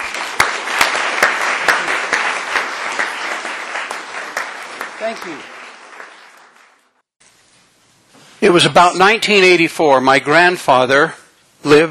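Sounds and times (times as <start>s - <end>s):
audience applause: 0.0s - 7.0s
speech: 5.0s - 5.6s, 8.4s - 11.8s.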